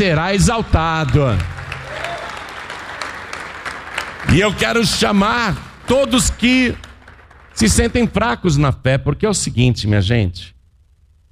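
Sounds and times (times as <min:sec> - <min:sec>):
speech: 0:00.0 - 0:01.5, 0:04.2 - 0:06.8, 0:07.6 - 0:10.5
congregation applauding at a church service: 0:00.6 - 0:08.4.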